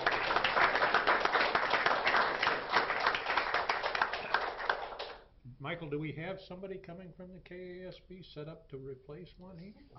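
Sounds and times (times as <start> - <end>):
group applauding: 0.0 - 5.3
speech: 5.7 - 9.9.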